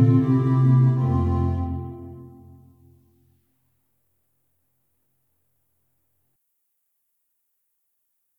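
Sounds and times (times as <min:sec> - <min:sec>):
instrumental music: 0:00.0 - 0:03.2.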